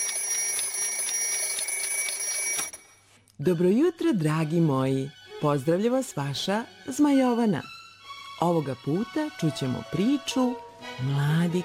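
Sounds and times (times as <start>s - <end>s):
alarm clock ringing: 0.0s - 3.0s
speech: 3.4s - 7.8s, 8.4s - 11.6s.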